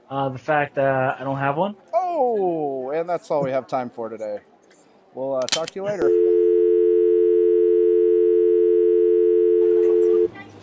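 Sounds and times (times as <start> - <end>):
speech: 0.1 - 4.5, 5.2 - 6.3
steady telephone busy tone after a dropped call: 6.0 - 10.3.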